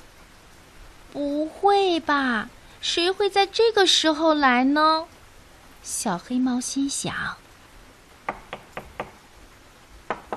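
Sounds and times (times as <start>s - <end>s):
speech: 1.1s - 5.1s, 5.8s - 7.4s
knocking on a door: 8.3s - 9.2s, 10.1s - 10.3s.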